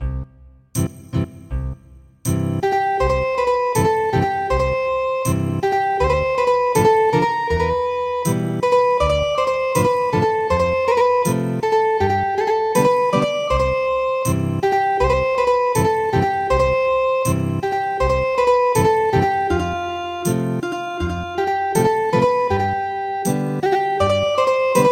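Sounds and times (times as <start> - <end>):
ethnic guitar music: 2.3 - 24.8.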